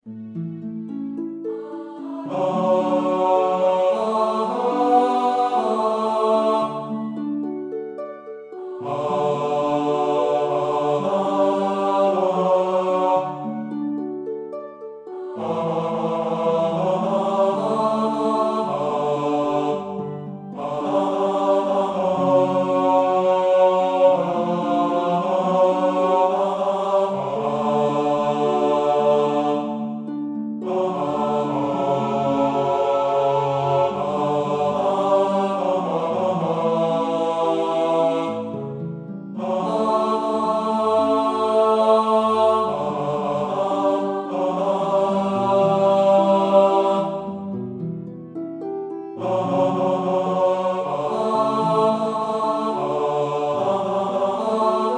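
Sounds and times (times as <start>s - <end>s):
tenor singing: 1.4s - 14.1s, 15.0s - 47.6s, 48.9s - 54.9s.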